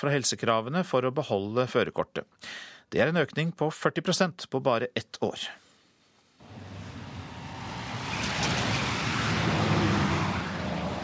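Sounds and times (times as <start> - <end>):
speech: 0.0 - 5.6
traffic noise outside a parked car: 6.4 - 11.0.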